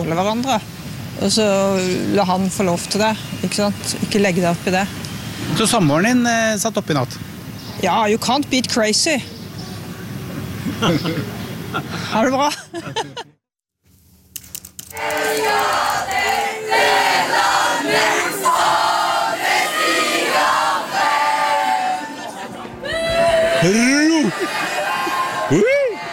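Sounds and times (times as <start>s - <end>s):
speech: 0.0s - 9.4s, 10.8s - 13.3s
laughter: 10.6s - 13.4s, 22.0s - 23.0s, 23.6s - 26.1s
crowd cheering: 14.9s - 26.1s.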